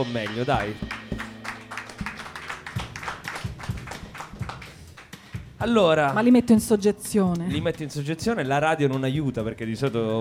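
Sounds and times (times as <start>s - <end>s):
speech: 0.0s - 1.2s, 5.6s - 10.1s
light scattered audience applause: 0.2s - 5.4s.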